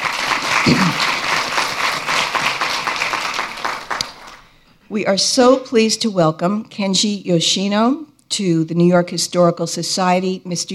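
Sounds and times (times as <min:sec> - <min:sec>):
audience applause at a New York Historical Society event: 0:00.0 - 0:04.6
speech: 0:00.7 - 0:01.1, 0:04.9 - 0:10.7.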